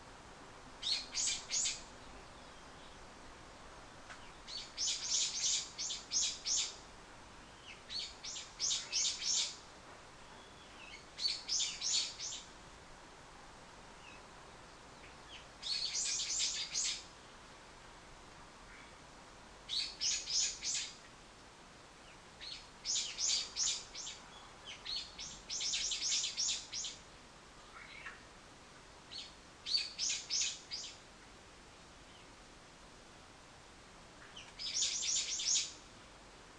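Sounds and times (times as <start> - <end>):
bird: 0.8 - 3.0, 4.1 - 6.8, 7.4 - 9.6, 10.2 - 12.5, 14.0 - 14.3, 14.9 - 17.3, 19.7 - 21.1, 22.0 - 27.0, 27.6 - 28.3, 29.1 - 31.0, 34.2 - 35.8.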